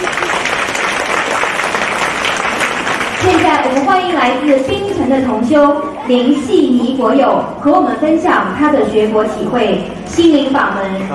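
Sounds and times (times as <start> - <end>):
audience applause: 0.0 - 4.5
speech: 3.7 - 11.1.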